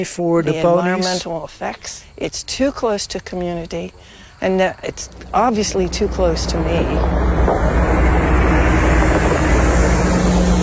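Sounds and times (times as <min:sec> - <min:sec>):
speech: 0:00.0 - 0:07.6
large bus driving past: 0:04.9 - 0:10.6.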